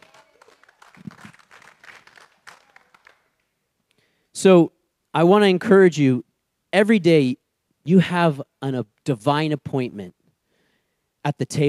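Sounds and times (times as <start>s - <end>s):
audience clapping: 0.0s - 3.6s
speech: 4.4s - 10.2s, 11.2s - 11.6s.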